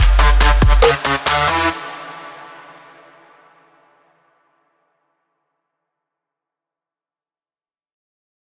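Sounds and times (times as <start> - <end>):
drum kit loop: 0.0 - 1.8.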